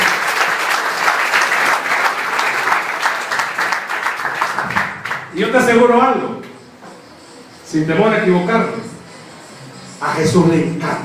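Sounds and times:
crowd applauding: 0.0s - 5.4s
speech: 5.4s - 6.4s, 7.7s - 8.9s, 10.2s - 11.0s.

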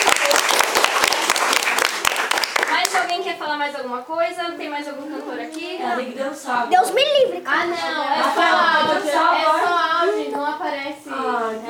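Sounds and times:
audience applause: 0.0s - 3.1s
speech: 3.3s - 11.6s.

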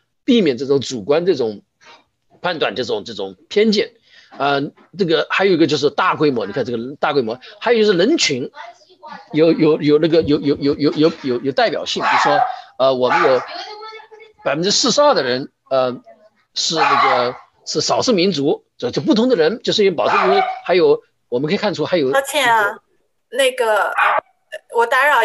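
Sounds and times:
speech: 0.3s - 13.8s, 14.4s - 25.2s
dog barking in the background: 11.9s - 13.7s, 16.7s - 17.5s, 20.0s - 20.8s, 23.9s - 24.2s.

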